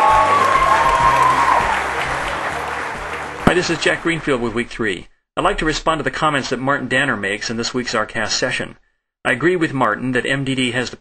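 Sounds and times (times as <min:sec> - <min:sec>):
audience applause welcoming a speaker: 0:00.0 - 0:04.4
speech: 0:03.6 - 0:10.9.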